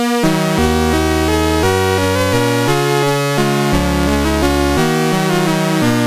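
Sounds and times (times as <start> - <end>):
MOS 6581R2 SID chip music: 0.2 - 5.9.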